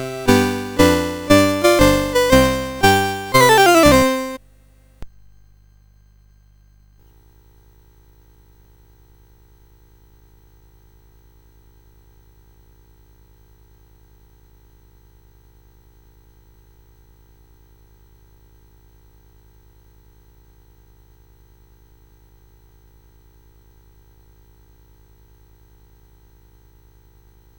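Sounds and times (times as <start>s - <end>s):
CSG 8580 sound chip: 0.0s - 4.4s.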